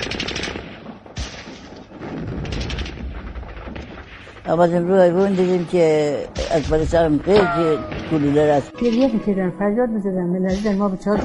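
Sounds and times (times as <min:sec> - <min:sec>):
machine gun fire: 0:00.0 - 0:05.8
rifle shots: 0:00.0 - 0:09.0
speech: 0:04.5 - 0:11.2.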